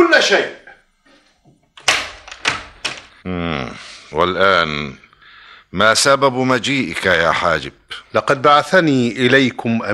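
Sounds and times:
speech: 0.2 - 0.6, 3.2 - 5.0, 5.7 - 9.9
door unlatched and swung open with solid wooden clunks: 1.8 - 3.2.

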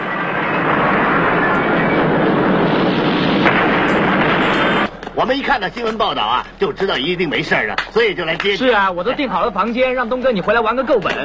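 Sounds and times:
explosion sound effect: 0.0 - 6.5
speech: 5.2 - 11.2.

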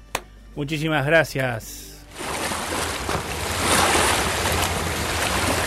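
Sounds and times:
speech: 0.6 - 1.9
river water flowing: 2.0 - 5.6.

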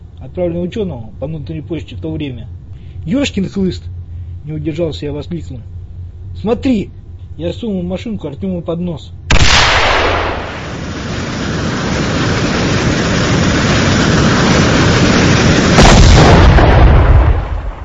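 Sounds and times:
speech: 0.2 - 9.2
RPG-7 rocket engine roar: 9.3 - 17.8.

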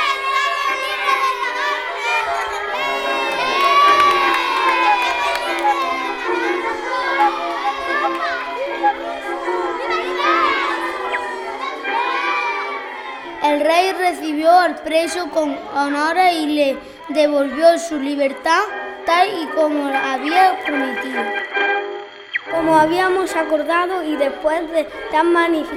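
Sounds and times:
laughter: 0.0 - 21.4, 22.6 - 25.7
crowd of townspeople cheering and shouting with joy: 0.0 - 21.6, 22.5 - 25.7
speech: 14.6 - 21.4, 22.6 - 25.7.

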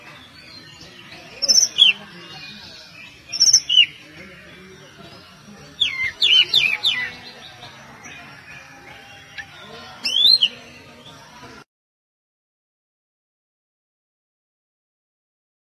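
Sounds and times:
Oriental magpie-robin song of clear varied whistles and slurred rising notes: 0.0 - 11.4.

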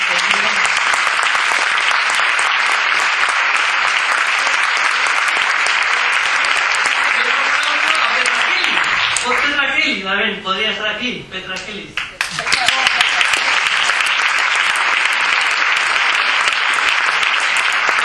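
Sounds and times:
audience applause at a public talk in Bilbao: 0.0 - 9.6, 12.0 - 18.0
speech: 10.0 - 12.7.

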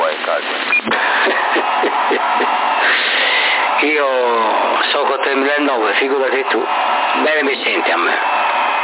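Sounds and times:
wind noise over CB radio transmission: 0.0 - 2.5
laughter: 0.8 - 3.6
speech: 3.8 - 8.6.

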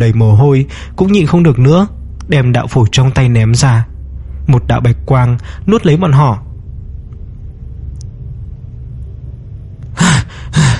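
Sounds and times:
speech: 0.0 - 3.9, 4.5 - 6.4
man sitting up with a sharp voiced gasp: 9.9 - 10.7.

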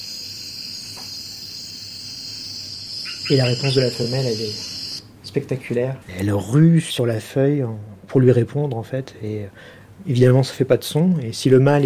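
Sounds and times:
insects in New Guinea: 0.0 - 5.0
speech: 3.3 - 4.7, 5.3 - 11.8.

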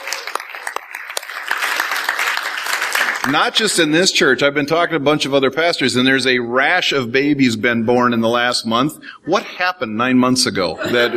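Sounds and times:
audience applause: 0.0 - 3.9
speech: 3.2 - 11.1
laughter: 10.6 - 11.1.

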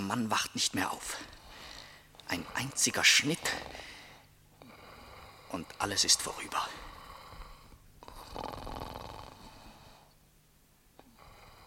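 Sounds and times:
speech: 0.1 - 1.4, 2.3 - 3.9, 5.5 - 6.9
man snoring in his sleep: 3.4 - 5.9, 6.5 - 10.0, 11.0 - 11.6.

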